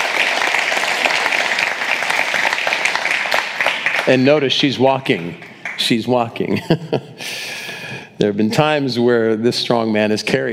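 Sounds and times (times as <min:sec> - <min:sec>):
audience applause welcoming two guests on stage: 0:00.0 - 0:06.0
speech: 0:04.1 - 0:07.5, 0:08.2 - 0:10.5
laughter: 0:06.4 - 0:07.5.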